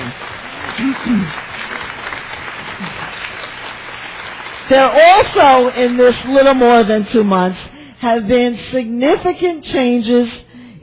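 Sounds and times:
round of applause: 0.0 - 6.3
speech: 0.8 - 1.5, 4.7 - 10.8.

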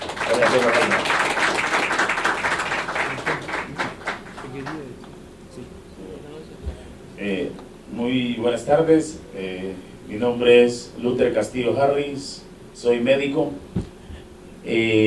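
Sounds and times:
audience applause: 0.0 - 4.9
speech: 0.3 - 1.0, 8.4 - 13.9, 14.7 - 15.0.

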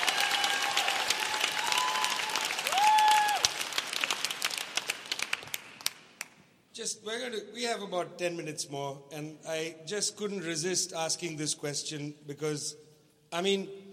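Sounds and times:
audience applause for panelists at a discussion event: 0.0 - 6.0
speech: 6.8 - 13.8.

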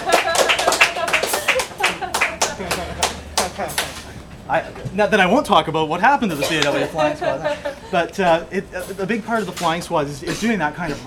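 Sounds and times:
audience clapping: 0.0 - 4.3
laughter: 0.0 - 5.5, 6.1 - 9.5
speech: 4.5 - 11.0.

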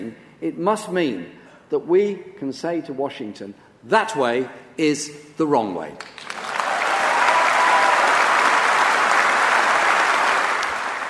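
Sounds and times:
speech: 0.0 - 6.2
audience applause at the Labour Party conference during a Jeremy Corbyn speech: 6.1 - 11.0.

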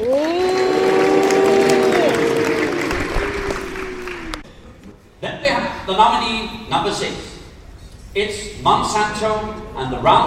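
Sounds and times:
audience cheering: 0.0 - 4.5
speech: 5.9 - 7.3, 8.2 - 10.2.

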